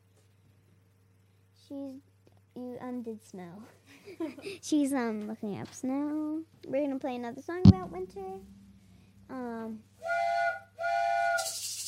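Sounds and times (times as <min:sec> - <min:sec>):
speech: 0:01.7 - 0:08.6, 0:09.3 - 0:10.2
train whistle of an arriving train: 0:10.0 - 0:11.6.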